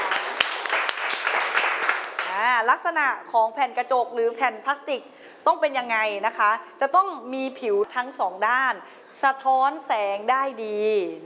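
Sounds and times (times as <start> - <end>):
students clapping: 0.0 - 2.6
speech: 2.6 - 11.2.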